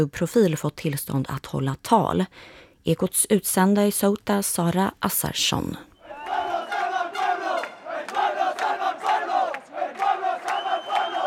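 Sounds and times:
speech: 0.0 - 5.9
crowd chanting at Plaza de los Reyes: 6.0 - 11.2.

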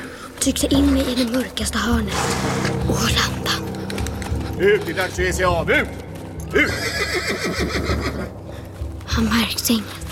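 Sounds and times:
speech: 0.4 - 3.7, 4.6 - 8.4, 9.2 - 10.0
horse neighing in a radio drama: 6.5 - 8.3.

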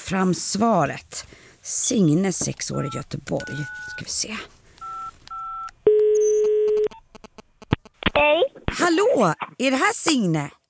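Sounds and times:
speech: 0.1 - 4.6, 8.8 - 10.6
phone line clicks as the call connects: 2.4 - 4.2, 4.8 - 8.0
phone keypad dialing beeps: 2.8 - 4.2, 4.8 - 7.4
telephone dial tone as a call is placed: 2.8 - 4.2, 4.8 - 7.4.

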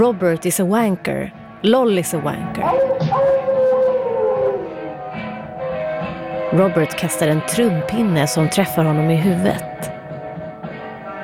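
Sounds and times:
speech: 0.0 - 3.3, 6.5 - 10.0
audience booing: 2.6 - 5.0.

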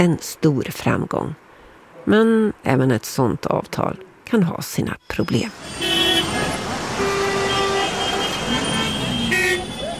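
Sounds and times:
speech: 0.0 - 1.4, 2.0 - 6.0
congested traffic outside large railway station in New Delhi: 0.0 - 9.9
car horns: 5.5 - 9.9.

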